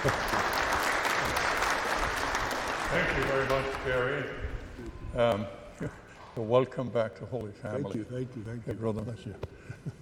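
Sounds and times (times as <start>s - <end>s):
church congregation applauding at Holy Family after Mass: 0.0s - 4.3s
speech: 2.9s - 4.4s, 5.2s - 10.0s.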